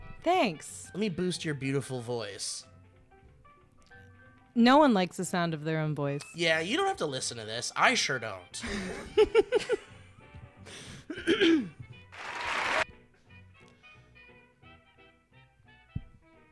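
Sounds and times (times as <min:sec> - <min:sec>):
speech: 0:00.2 - 0:02.7, 0:04.6 - 0:09.8, 0:10.7 - 0:11.8
laughter: 0:08.6 - 0:09.9
short applause: 0:12.1 - 0:12.8.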